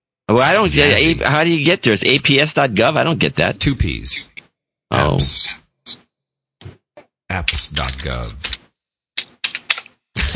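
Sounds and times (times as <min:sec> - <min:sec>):
speech: 0:00.3 - 0:04.3, 0:04.9 - 0:06.0, 0:07.3 - 0:08.6
typewriter keys clacking: 0:09.2 - 0:10.0.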